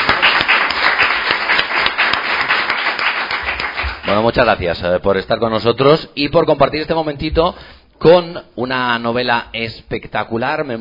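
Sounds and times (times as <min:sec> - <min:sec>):
audience applause: 0:00.0 - 0:04.2
speech: 0:04.2 - 0:10.7.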